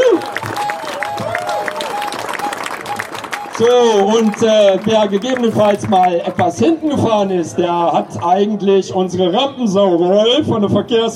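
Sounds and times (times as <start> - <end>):
audience applause: 0.0 - 6.5
speech: 3.6 - 11.1.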